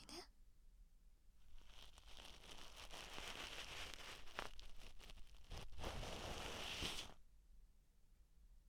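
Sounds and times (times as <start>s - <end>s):
ASMR right ear cleaning: 1.5s - 7.2s.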